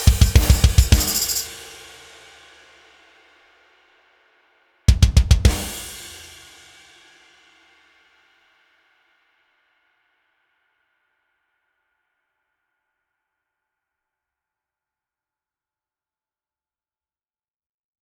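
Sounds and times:
metal drums: 0.0 - 1.8, 4.9 - 6.3.

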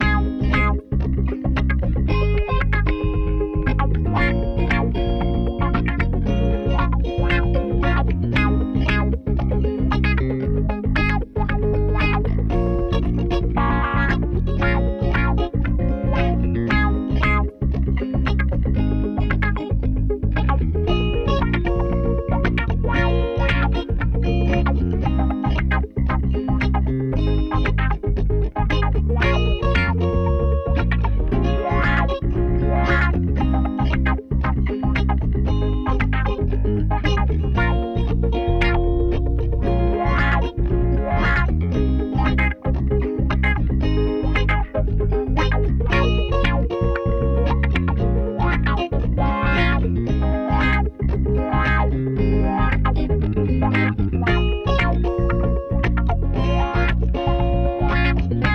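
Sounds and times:
funk music for kids: 0.0 - 58.5.

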